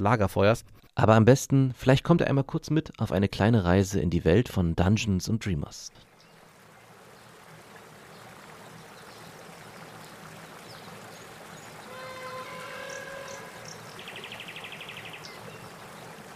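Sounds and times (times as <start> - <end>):
speech: 0.0 - 6.1
rushing river water during a boat ride: 6.0 - 16.3.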